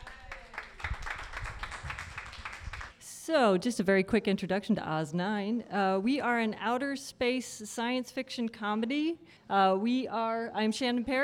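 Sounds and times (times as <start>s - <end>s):
round of applause: 0.0s - 3.0s
speech: 3.3s - 11.2s.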